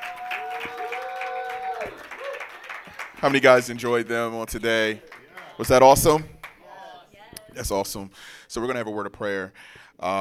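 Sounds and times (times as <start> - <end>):
audience clapping: 0.0 - 7.0
speech: 3.2 - 6.4, 7.6 - 10.1.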